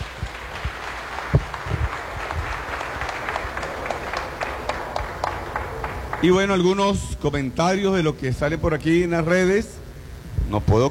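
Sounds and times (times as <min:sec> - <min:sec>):
applause: 0:00.0 - 0:07.0
speech: 0:06.2 - 0:09.8, 0:10.5 - 0:10.8.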